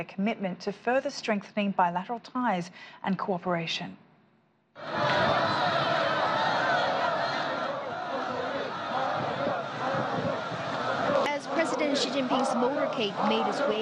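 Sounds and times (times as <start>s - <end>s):
speech: 0.0s - 4.0s, 12.0s - 13.8s
crowd shouts and laughter: 4.8s - 13.8s
large crowd of well-wishers cheering and chattering along motorcade route: 4.8s - 13.8s.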